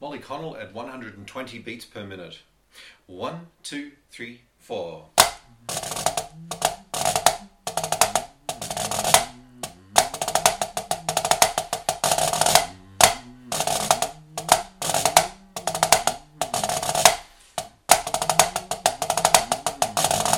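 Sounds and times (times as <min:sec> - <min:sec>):
snare drum: 0:05.2 - 0:20.3.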